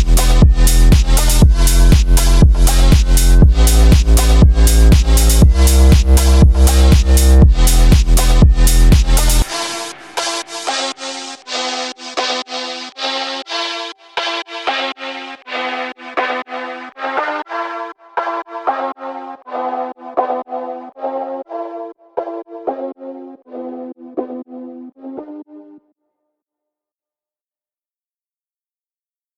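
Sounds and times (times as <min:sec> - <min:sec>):
phonk soundtrack music: 0:00.0 - 0:19.2.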